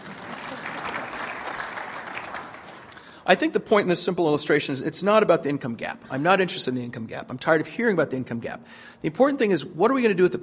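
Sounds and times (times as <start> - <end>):
audience applause: 0.0 - 3.2
speech: 3.3 - 10.4.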